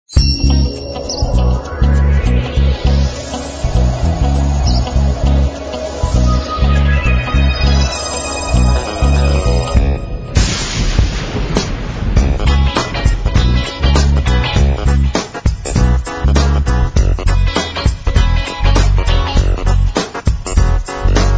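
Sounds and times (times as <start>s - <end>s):
funk music: 0.2s - 21.3s.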